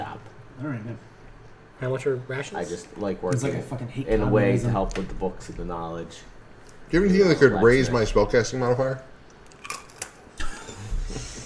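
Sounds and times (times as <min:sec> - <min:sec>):
speech: 0:00.6 - 0:01.2, 0:01.8 - 0:06.3, 0:06.9 - 0:09.1
crunching bites of food into the microphone: 0:09.3 - 0:10.3.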